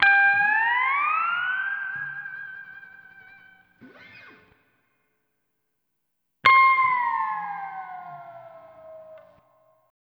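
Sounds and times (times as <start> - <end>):
steel guitar lounge music in C: 0.0 - 4.4, 6.5 - 9.4.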